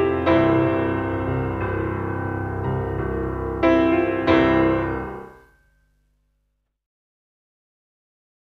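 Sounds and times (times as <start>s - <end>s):
jazz music: 0.0s - 5.5s.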